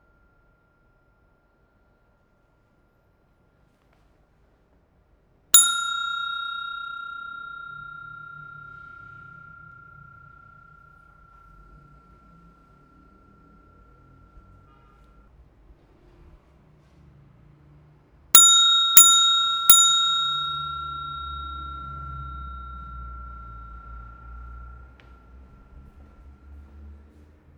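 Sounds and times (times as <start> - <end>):
hotel bell: 5.6 - 15.3, 18.4 - 27.2.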